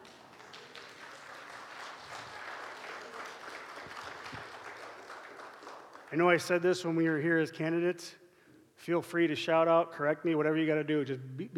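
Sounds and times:
audience clapping: 0.0 - 6.9
speech: 6.1 - 8.2, 8.8 - 11.5.

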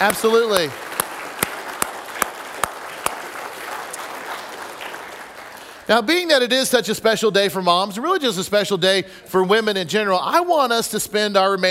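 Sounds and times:
speech: 0.0 - 0.8, 5.9 - 11.7
sharp loud claps: 0.0 - 5.6
audience applause: 0.0 - 5.9.

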